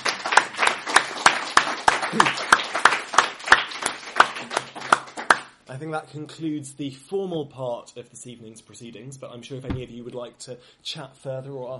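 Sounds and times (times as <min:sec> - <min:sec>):
audience applause: 0:00.0 - 0:05.5
speech: 0:02.1 - 0:02.4, 0:05.7 - 0:11.7.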